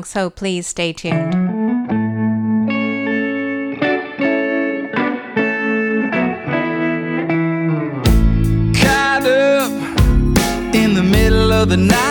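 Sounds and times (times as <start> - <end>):
speech: 0.0 - 1.6, 11.6 - 12.0
instrumental pop song intro with effects-heavy chorused chords: 1.3 - 12.0.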